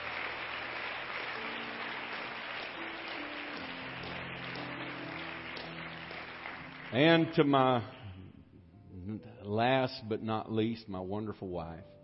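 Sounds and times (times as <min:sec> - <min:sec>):
audience hand clapping: 0:00.0 - 0:08.2
speech: 0:06.9 - 0:08.0, 0:09.5 - 0:12.0.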